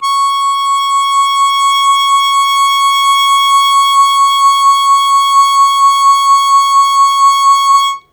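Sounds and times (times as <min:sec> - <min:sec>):
harmonica long sustained fast wah-wah on C#2: 0:00.0 - 0:08.1.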